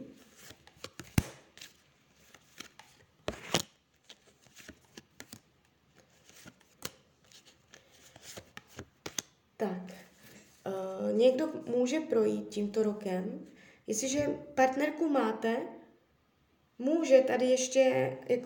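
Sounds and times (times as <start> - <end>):
tarot cards being drawn and shuffled: 0.1 - 9.4
speech: 9.6 - 10.0, 11.2 - 15.8, 16.8 - 18.4.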